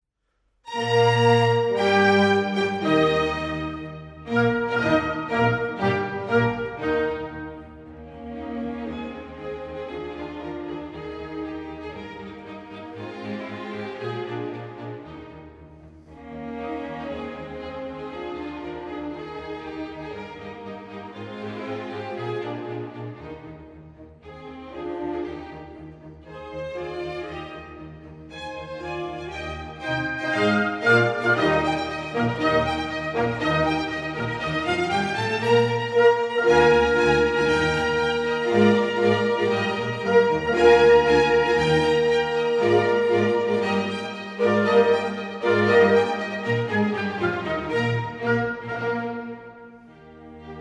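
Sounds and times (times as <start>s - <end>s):
concerto for two horns: 0.7s - 8.0s, 29.3s - 50.1s.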